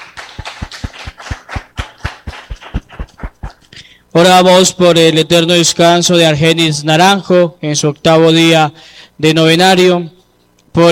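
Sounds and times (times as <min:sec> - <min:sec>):
audience applause: 0:00.0 - 0:03.6
speech: 0:04.2 - 0:10.2.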